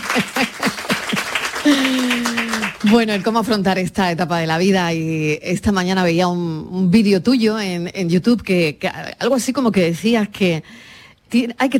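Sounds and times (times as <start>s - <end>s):
laughter: 0.0s - 2.9s
audience applause: 0.0s - 3.4s
speech: 0.2s - 0.5s, 2.9s - 11.7s.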